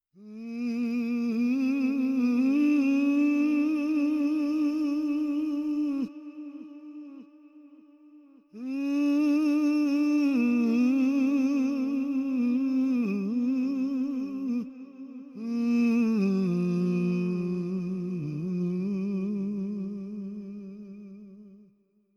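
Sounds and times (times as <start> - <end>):
solo voice with reverb: 0.1 - 21.7.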